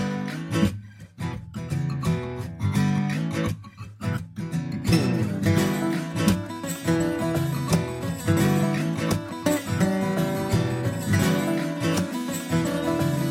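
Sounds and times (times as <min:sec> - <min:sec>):
instrumental music: 0:00.0 - 0:13.2.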